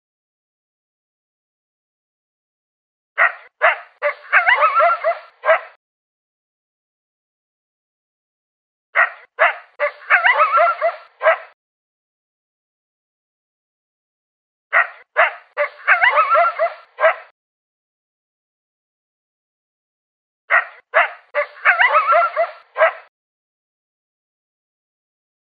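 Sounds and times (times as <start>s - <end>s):
coyote barking and yelping: 3.2s - 5.8s, 9.0s - 11.6s, 14.7s - 17.3s, 20.5s - 23.1s.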